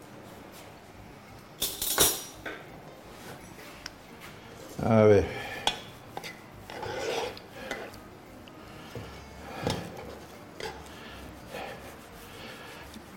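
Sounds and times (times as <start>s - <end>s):
utensil pressing an onion in a hot pan: 3.1s - 13.1s
speech: 4.8s - 5.4s.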